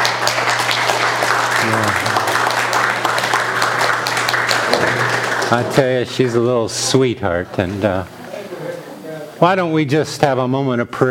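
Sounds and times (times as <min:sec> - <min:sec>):
audience applause: 0:00.0 - 0:06.5
speech: 0:05.5 - 0:08.2, 0:09.4 - 0:11.0.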